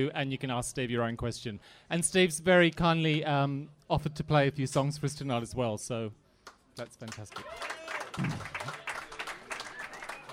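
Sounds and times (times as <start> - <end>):
speech: 0.0 - 6.2, 6.8 - 8.8
audience clapping: 6.5 - 10.3.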